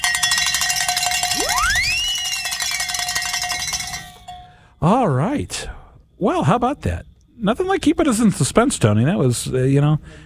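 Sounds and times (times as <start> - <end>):
bell clanging to celebrate a pledge: 0.0 - 4.5
rising swooping whistle-like tone: 1.2 - 2.9
speech: 4.8 - 10.2.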